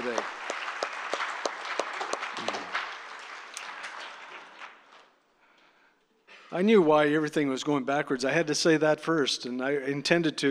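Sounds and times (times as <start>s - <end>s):
audience applause: 0.0s - 5.1s
speech: 6.5s - 10.4s.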